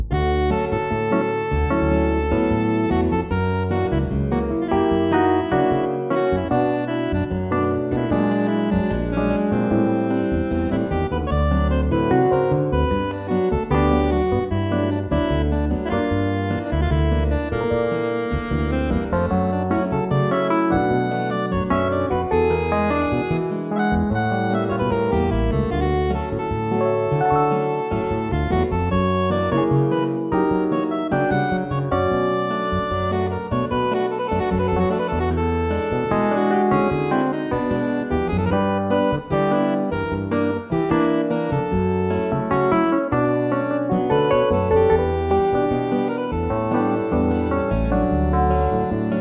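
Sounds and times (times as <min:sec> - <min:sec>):
saxophone: 0:00.1 - 0:49.1.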